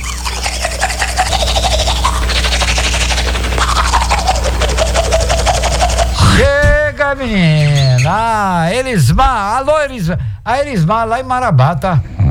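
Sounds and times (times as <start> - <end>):
brushing teeth with a toothbrush: 0.0 - 6.7
speech: 7.2 - 12.1.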